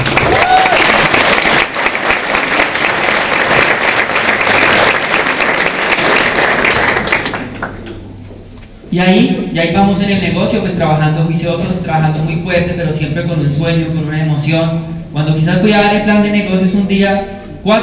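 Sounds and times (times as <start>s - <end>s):
crowd clapping: 0.0s - 7.9s
whoop: 0.2s - 1.0s
speech: 9.0s - 17.8s.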